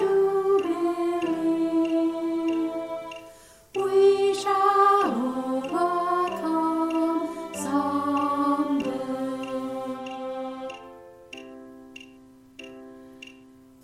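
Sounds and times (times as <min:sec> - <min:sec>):
soprano singing: 0:00.0 - 0:11.0.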